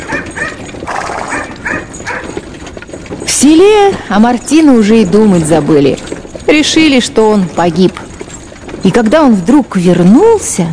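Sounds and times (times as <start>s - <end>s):
dog barking sharp yaps: 0.0s - 0.6s, 1.2s - 2.4s
speech: 3.4s - 8.0s, 8.8s - 10.7s.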